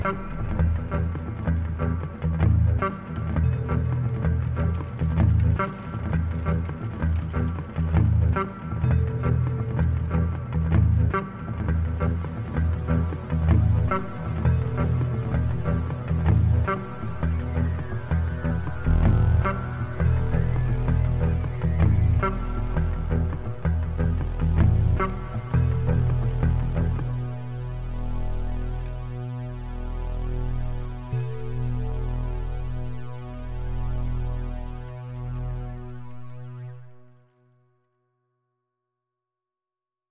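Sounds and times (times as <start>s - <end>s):
guitar strings: 0.0s - 34.4s
rain: 0.2s - 27.9s.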